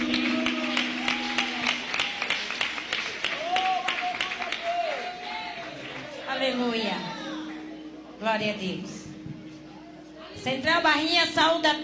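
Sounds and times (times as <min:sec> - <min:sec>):
audience applauding: 0:00.0 - 0:06.4
speech: 0:08.3 - 0:09.0, 0:10.4 - 0:11.8.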